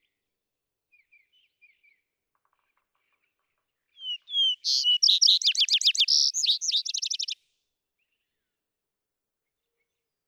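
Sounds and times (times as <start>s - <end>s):
vesper sparrow singing: 4.0s - 7.4s.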